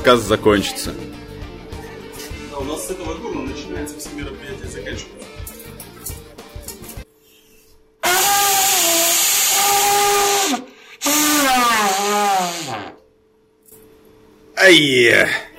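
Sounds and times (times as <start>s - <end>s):
speech: 0.0s - 1.2s, 2.6s - 5.5s, 14.6s - 15.4s
toy pipe being blown: 8.0s - 13.0s.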